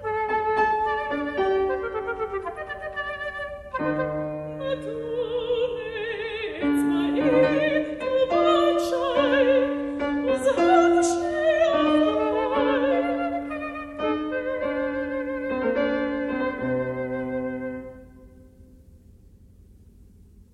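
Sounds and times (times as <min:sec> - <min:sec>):
flute: 0:00.0 - 0:06.4, 0:10.3 - 0:18.5
soprano singing in Hebrew: 0:00.0 - 0:18.5
piano: 0:00.0 - 0:20.5.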